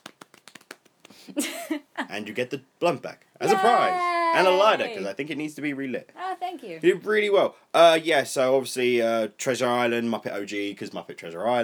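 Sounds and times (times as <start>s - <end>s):
speech: 1.3s - 11.6s
golf clap soft applause: 3.4s - 5.1s.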